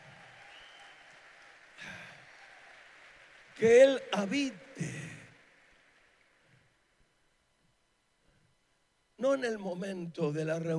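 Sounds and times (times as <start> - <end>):
applause: 0.0 - 6.8
speech: 3.6 - 5.2, 9.4 - 10.7.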